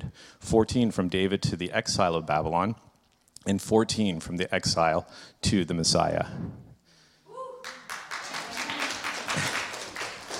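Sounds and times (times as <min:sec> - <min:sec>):
speech: 0:00.4 - 0:06.6
group applauding: 0:07.6 - 0:10.3.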